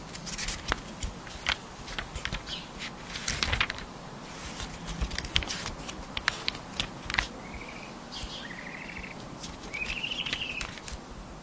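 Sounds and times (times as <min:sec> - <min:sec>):
crackling and rustling clicks in a magical library ambience: 0:00.0 - 0:11.1
bird-like chirping trills: 0:02.4 - 0:02.8, 0:06.6 - 0:10.9.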